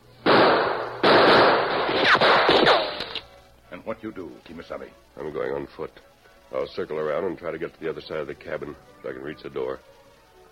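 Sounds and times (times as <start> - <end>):
gunshots fired in a shootout: 0.2 - 3.2
whining ricochets: 1.5 - 3.2
speech: 3.9 - 10.0.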